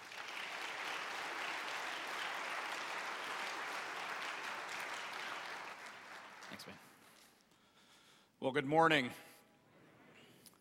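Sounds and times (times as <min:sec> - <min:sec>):
audience clapping to welcome a speaker: 0:00.0 - 0:07.2
speech: 0:06.6 - 0:06.9, 0:08.4 - 0:09.3.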